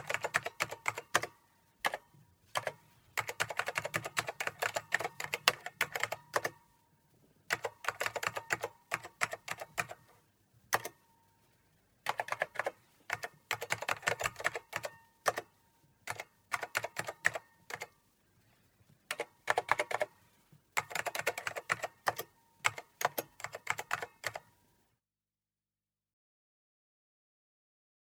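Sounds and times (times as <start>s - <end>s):
typing on a computer keyboard: 0.0s - 6.6s, 7.5s - 10.1s, 10.7s - 11.0s, 12.0s - 15.5s, 16.1s - 18.0s, 19.1s - 20.2s, 20.8s - 24.6s.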